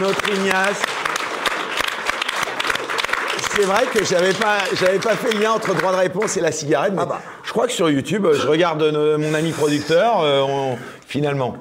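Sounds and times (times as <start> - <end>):
speech: 0.0 - 1.0, 3.6 - 11.5
audience applause: 0.0 - 6.9.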